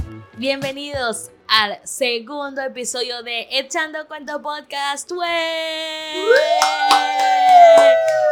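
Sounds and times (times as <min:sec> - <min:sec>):
speech: 0:00.4 - 0:08.3
group applause: 0:06.2 - 0:08.3.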